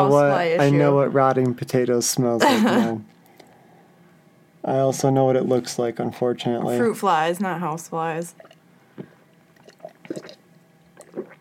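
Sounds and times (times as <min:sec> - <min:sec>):
speech: 0:00.0 - 0:03.2, 0:04.6 - 0:09.1
person drinking: 0:08.4 - 0:10.4, 0:11.0 - 0:11.3.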